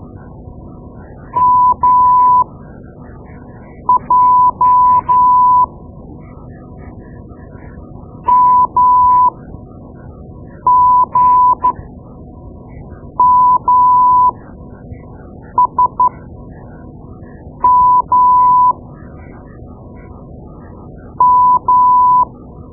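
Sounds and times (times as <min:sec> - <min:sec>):
morse code: 0:01.4 - 0:02.4, 0:03.9 - 0:05.7, 0:08.3 - 0:09.3, 0:10.7 - 0:11.7, 0:13.2 - 0:14.4, 0:17.6 - 0:18.7, 0:21.2 - 0:22.3.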